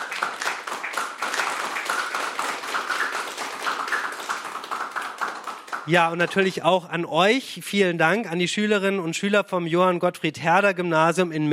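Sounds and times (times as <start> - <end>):
applause from a small group: 0.0 - 6.6
speech: 5.8 - 11.5.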